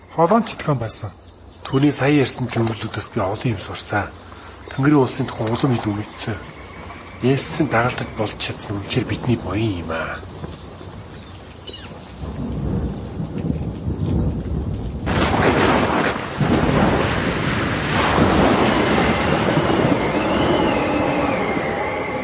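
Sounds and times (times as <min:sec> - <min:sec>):
howling storm wind: 0:00.0 - 0:22.2
speech: 0:00.2 - 0:06.6, 0:07.2 - 0:10.3
waves pounding a boat: 0:15.1 - 0:22.2.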